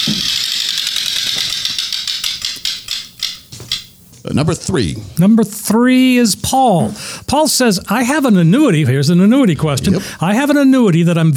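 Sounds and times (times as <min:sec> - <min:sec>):
spinning reel ratcheting as it winds down: 0:00.2 - 0:04.2
speech: 0:04.2 - 0:11.3.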